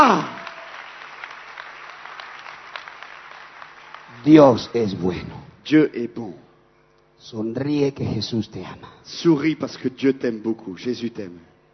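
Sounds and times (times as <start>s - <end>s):
speech: 0.0s - 0.4s, 4.2s - 6.4s, 7.2s - 11.5s
loud applause from audience: 0.0s - 4.8s.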